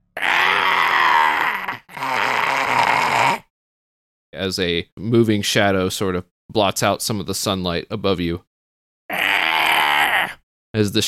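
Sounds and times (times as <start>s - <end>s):
voice imitating a harpy's screech: 0.0s - 3.5s, 9.1s - 10.4s
speech: 4.4s - 8.5s, 10.8s - 11.0s.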